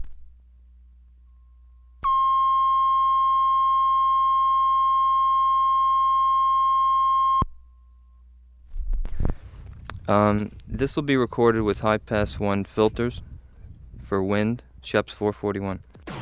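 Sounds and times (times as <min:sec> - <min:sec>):
sine reference tone for 7.5 IPS tape transfer: 0:01.1 - 0:08.6
speech: 0:10.1 - 0:13.3, 0:14.1 - 0:15.9.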